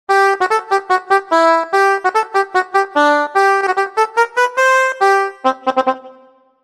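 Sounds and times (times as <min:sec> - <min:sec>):
accordion: 0:00.1 - 0:06.4.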